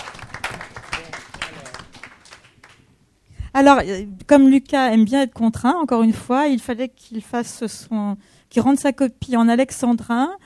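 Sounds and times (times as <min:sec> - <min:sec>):
audience applause: 0:00.0 - 0:02.8
speech: 0:03.6 - 0:10.4.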